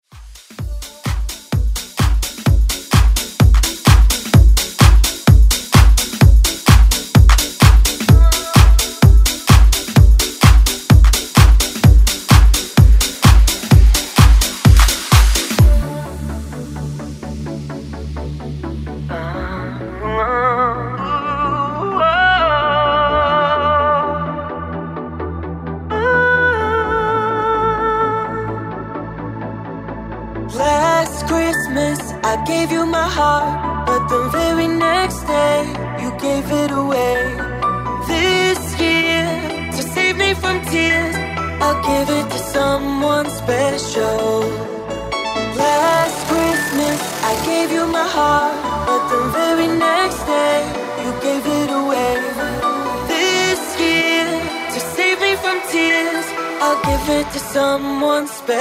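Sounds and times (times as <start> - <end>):
dance music: 0.0 - 58.6.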